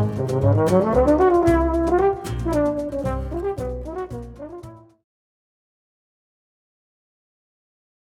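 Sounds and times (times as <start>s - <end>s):
flamenco buleria music: 0.0s - 4.9s.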